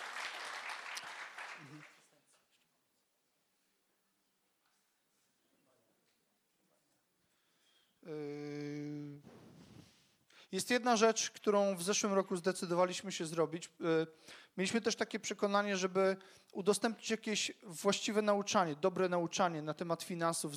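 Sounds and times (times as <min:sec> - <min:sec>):
audience applauding: 0:00.0 - 0:02.0
speech: 0:10.5 - 0:20.5.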